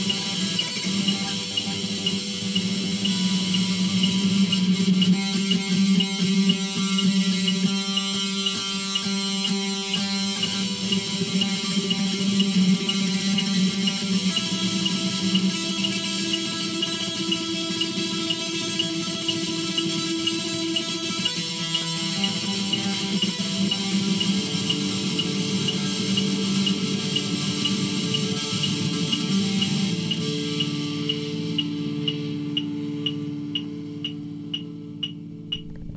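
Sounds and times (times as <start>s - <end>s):
messy rock tremolo picking: 0.0s - 35.9s
metronome clicking: 0.0s - 35.9s.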